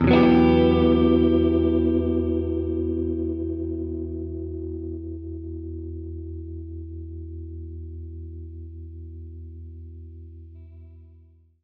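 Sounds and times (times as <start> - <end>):
Gretsch guitar E minor add9 chord: 0.0 - 8.5.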